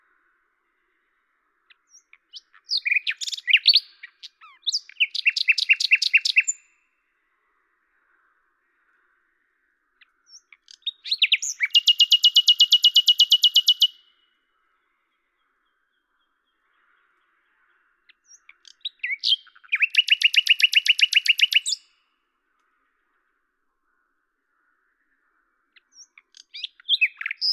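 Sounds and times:
common nightingale singing: 1.7 - 6.8, 10.0 - 14.4, 15.1 - 22.0, 25.8 - 27.5.

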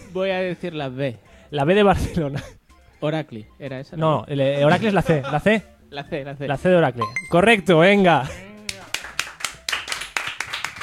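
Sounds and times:
speech: 0.1 - 8.4
small quiz show audience clapping: 8.6 - 10.8.

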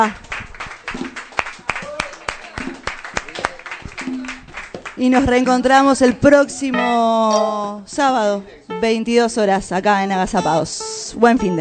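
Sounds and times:
speech: 0.0 - 0.2, 5.0 - 11.5
small group applauding a band of musicians: 0.0 - 5.6
people cheering: 0.8 - 4.8.

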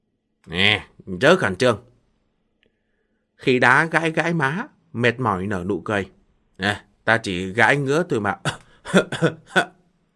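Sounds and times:
speech: 0.4 - 1.9, 3.4 - 9.8
violent coughing: 8.4 - 9.8.

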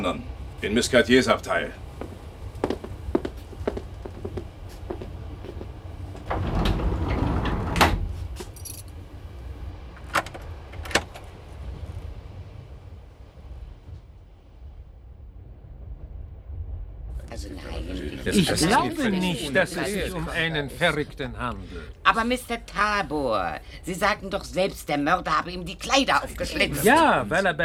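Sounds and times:
speech: 0.0 - 1.8, 18.3 - 27.6
moving train rolling rumble: 0.0 - 27.6
keys jangling: 8.4 - 9.0
laughter: 17.3 - 24.4, 26.0 - 27.6.

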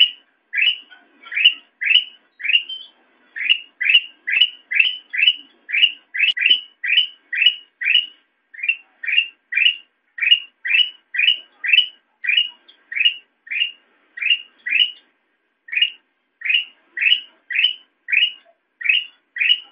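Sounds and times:
sooty-headed bulbul calling: 0.0 - 15.1, 15.7 - 19.7.

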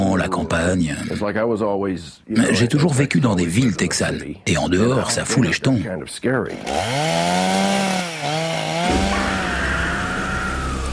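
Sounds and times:
speech: 0.3 - 9.1
chainsaw running: 6.5 - 10.9.

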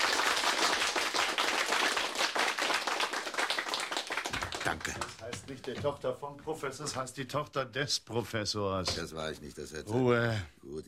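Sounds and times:
heavy applause in a radio play: 0.0 - 5.8
speech: 4.6 - 10.8.

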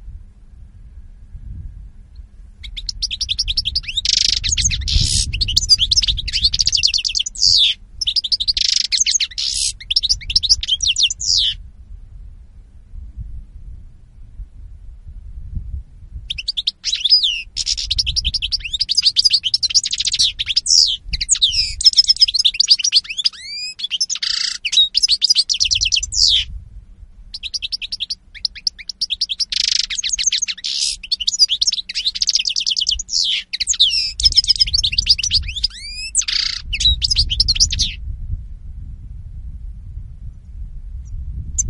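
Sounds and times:
low rumble: 0.0 - 6.6, 9.7 - 16.3, 25.8 - 27.4, 36.8 - 41.6
European goldfinch twittering song: 2.6 - 11.6, 16.3 - 26.5, 27.3 - 38.0.

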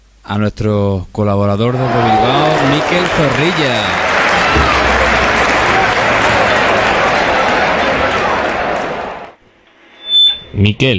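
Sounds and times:
speech: 0.3 - 4.0, 10.5 - 10.9
studio applause and cheering from a crowd as a jingle: 1.7 - 9.4.

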